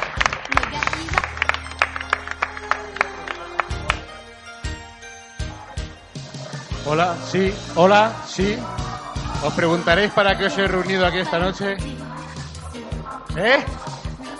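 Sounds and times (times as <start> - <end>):
audience applause: 0.0 - 4.2
speech: 6.9 - 8.8, 9.4 - 11.9, 13.4 - 13.8.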